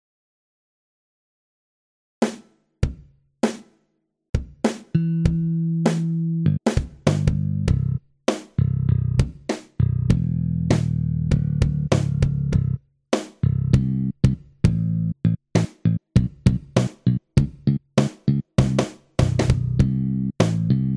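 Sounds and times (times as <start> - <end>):
bass line of a song: 5.0 - 8.0, 8.6 - 12.8, 13.4 - 20.9.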